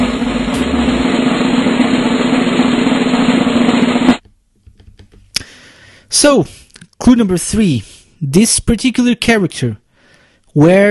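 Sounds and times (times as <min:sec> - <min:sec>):
drum roll: 0:00.0 - 0:04.2
speech: 0:06.2 - 0:09.8, 0:10.6 - 0:10.8.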